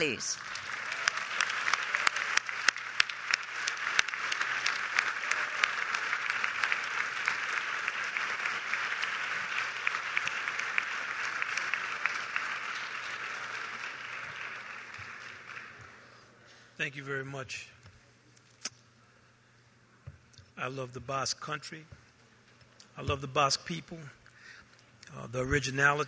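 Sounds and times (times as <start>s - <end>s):
speech: 0.0s - 0.6s, 16.8s - 17.8s, 20.6s - 22.0s, 23.0s - 24.2s, 25.1s - 26.0s
audience applause: 0.0s - 16.2s.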